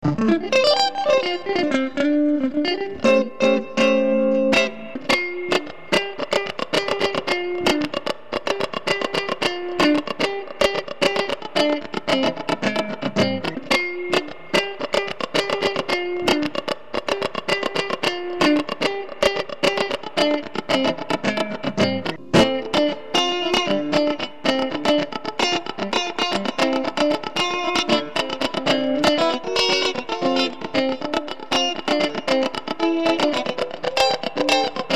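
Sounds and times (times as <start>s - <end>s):
funky tone: 0.0s - 34.9s.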